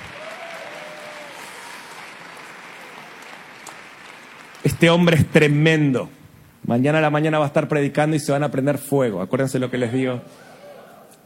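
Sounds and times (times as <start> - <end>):
audience applause: 0.0 - 5.7
speech: 4.6 - 10.5.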